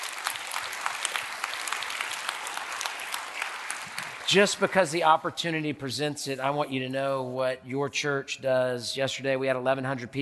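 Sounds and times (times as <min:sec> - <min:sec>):
cheers: 0:00.0 - 0:04.3
crowd clapping: 0:00.0 - 0:05.2
speech: 0:04.3 - 0:10.2.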